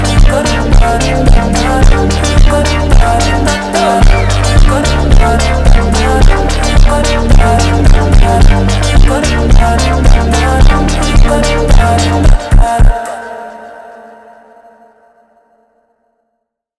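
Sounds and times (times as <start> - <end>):
slowed funk music: 0.0 - 13.3.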